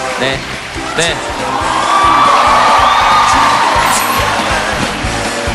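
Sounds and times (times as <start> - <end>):
speech: 0.2 - 1.7
large audience clapping: 0.2 - 5.4
whoops, shouts and excited yells: 1.4 - 4.6.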